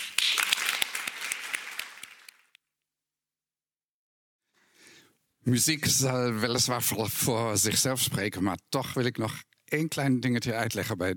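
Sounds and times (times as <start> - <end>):
audience applause: 0.0 - 2.5
speech: 5.4 - 11.1.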